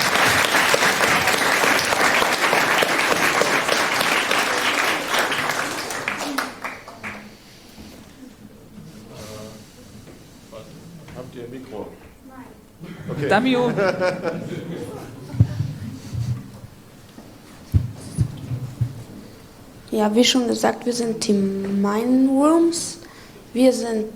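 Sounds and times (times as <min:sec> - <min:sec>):
audience applause: 0:00.0 - 0:07.4
laughter: 0:12.8 - 0:16.2
speech: 0:13.3 - 0:14.6, 0:20.0 - 0:23.0, 0:23.6 - 0:24.1.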